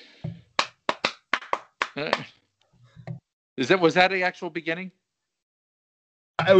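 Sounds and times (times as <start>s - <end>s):
hand claps: 0.2s - 2.3s
speech: 2.0s - 2.4s, 3.6s - 5.0s, 6.4s - 6.5s.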